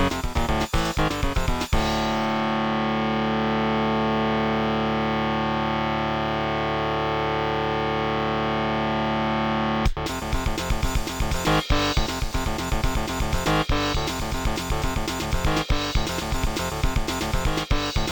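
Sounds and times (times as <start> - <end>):
Orchid SoundWave 32 soundcard test playback: 0.0 - 18.1.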